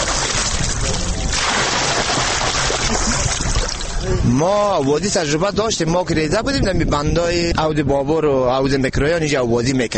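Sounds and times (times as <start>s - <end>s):
people swimming and splashing in dam water: 0.0s - 4.0s
speech: 4.3s - 9.9s.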